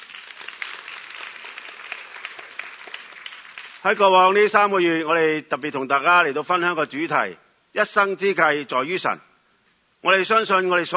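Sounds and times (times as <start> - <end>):
audience applause: 0.0 - 4.0
speech: 3.8 - 9.3, 10.0 - 10.9.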